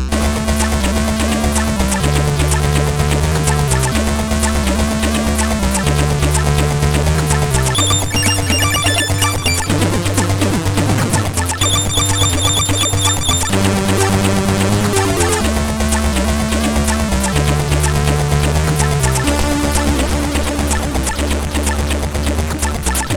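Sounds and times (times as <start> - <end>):
chiptune melody on SID 8580R5 chip: 0.1 - 23.0.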